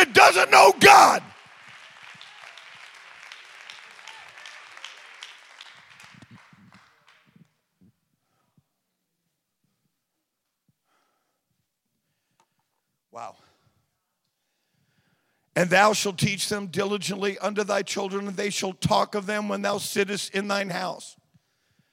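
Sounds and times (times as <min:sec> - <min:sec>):
church congregation clapping hands in praise: 0:00.0 - 0:07.7
speech: 0:00.3 - 0:01.2, 0:15.6 - 0:21.2.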